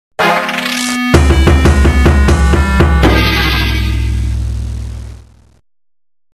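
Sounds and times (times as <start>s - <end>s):
game over sound: 0.2s - 5.2s.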